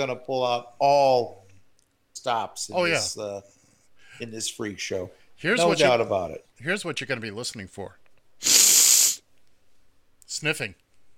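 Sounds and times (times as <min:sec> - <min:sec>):
speech: 0:00.0 - 0:01.4, 0:02.2 - 0:03.6, 0:04.2 - 0:08.6, 0:10.4 - 0:10.8
person sniffling: 0:08.4 - 0:09.3.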